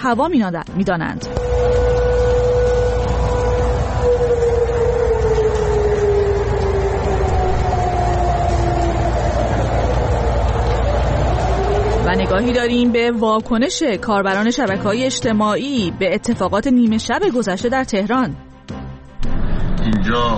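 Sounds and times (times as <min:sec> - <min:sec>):
speech: 0:00.0 - 0:01.4, 0:12.1 - 0:18.4, 0:20.1 - 0:20.3
siren wailing in Tehran: 0:01.0 - 0:15.1.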